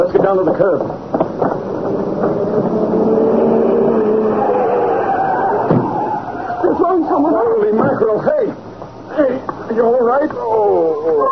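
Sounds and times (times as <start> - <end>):
speech: 0.0 - 1.6, 8.0 - 8.6, 9.8 - 11.3
car engine roaring: 1.0 - 7.8.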